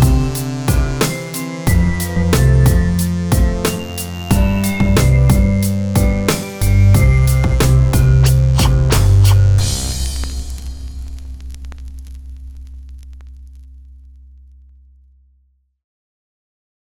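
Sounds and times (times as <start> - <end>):
hip hop version of a birthday song: 0.0 - 10.5.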